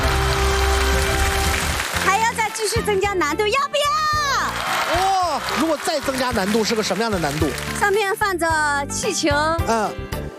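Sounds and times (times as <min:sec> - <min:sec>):
studio audience applause: 0:00.0 - 0:02.8, 0:04.2 - 0:08.0
speech: 0:02.8 - 0:04.2, 0:04.9 - 0:10.3.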